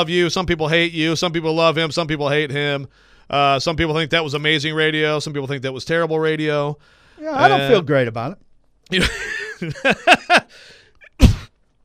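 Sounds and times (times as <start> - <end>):
speech: 0.0 - 10.8
laughter: 9.0 - 10.5
person snorting into the microphone: 10.5 - 11.5
person coughing into the microphone: 11.1 - 11.5.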